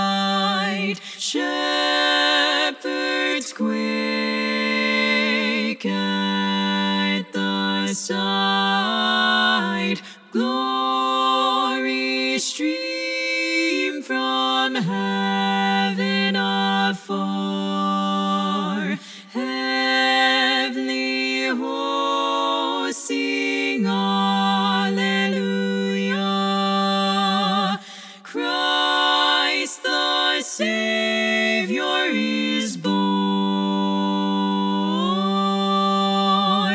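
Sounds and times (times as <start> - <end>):
lead voice singing a carol for SSAA choir: 0.0 - 36.7.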